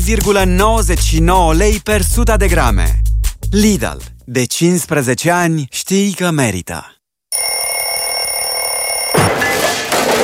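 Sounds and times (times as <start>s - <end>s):
speech: 0.0s - 7.5s
alarm clock ringing: 7.3s - 9.3s.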